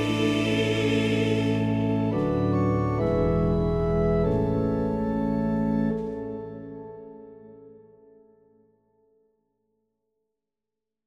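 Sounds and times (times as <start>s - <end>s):
choral organ music: 0.0s - 8.5s.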